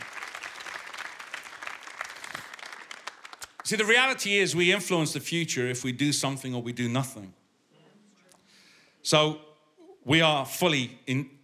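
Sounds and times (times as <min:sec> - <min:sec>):
audience round of applause: 0:00.0 - 0:03.7
speech: 0:03.7 - 0:07.4, 0:09.1 - 0:11.4.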